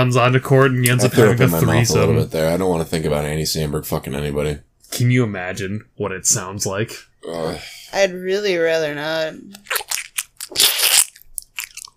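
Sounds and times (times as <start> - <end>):
speech: 0.0 - 9.8
fast crunchy chewing: 9.6 - 11.9.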